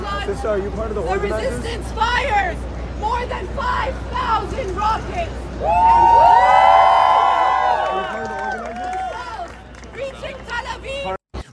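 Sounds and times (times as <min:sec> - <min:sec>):
speech: 0:00.3 - 0:06.5
crowd celebrating and cheering: 0:05.6 - 0:10.7.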